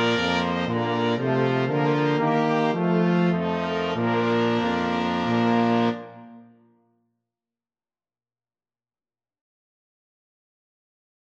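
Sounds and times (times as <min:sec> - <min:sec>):
flexible mixed ensemble of five players: 0:00.0 - 0:06.4.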